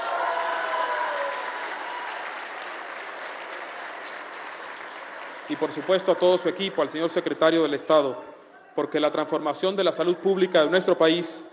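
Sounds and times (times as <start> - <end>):
crowd applause: 0.0 - 7.1
speech: 5.5 - 11.5.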